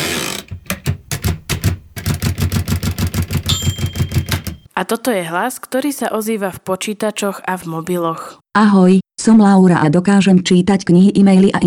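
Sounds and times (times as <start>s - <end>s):
Picht Braille typewriter clacking: 0.0s - 4.7s
high ringing tone: 3.5s - 4.7s
speech: 4.8s - 11.6s.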